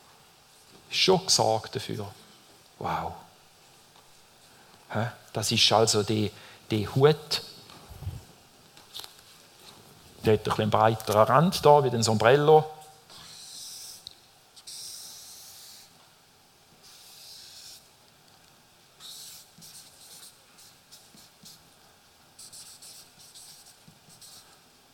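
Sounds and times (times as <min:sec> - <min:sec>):
speech: 0:00.9 - 0:02.2, 0:02.8 - 0:03.2, 0:04.9 - 0:07.5, 0:10.2 - 0:12.8
pen scratching across paper writing by hand: 0:13.1 - 0:14.0, 0:14.6 - 0:15.9, 0:16.8 - 0:17.8, 0:19.0 - 0:21.6, 0:22.4 - 0:24.4.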